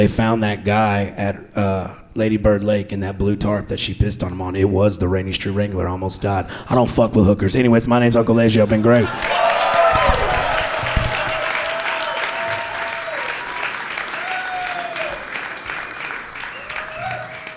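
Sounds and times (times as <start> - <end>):
speech: 0.0 - 9.5
audience applause and cheering: 9.0 - 17.5.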